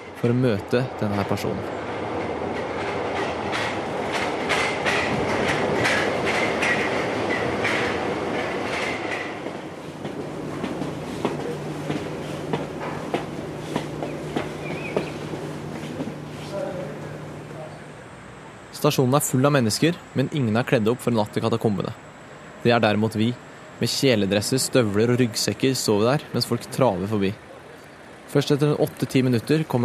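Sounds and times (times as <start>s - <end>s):
Paris metro train rumbling with a loud steady roar: 0.0s - 29.8s
speech: 0.2s - 1.9s, 18.8s - 22.0s, 22.6s - 27.5s, 28.3s - 29.8s
metro train wheels clacking over track joints: 2.0s - 16.2s.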